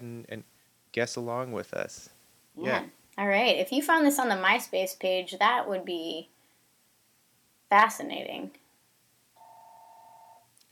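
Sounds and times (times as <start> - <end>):
speech: 0.2 - 6.3, 7.7 - 8.6
electronic telephone ring of someone calling in: 9.4 - 10.4.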